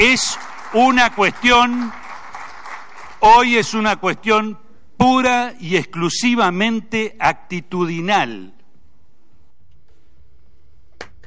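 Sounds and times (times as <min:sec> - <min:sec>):
speech: 0:00.0 - 0:02.0, 0:03.2 - 0:08.6
one person clapping hands: 0:00.0 - 0:03.2.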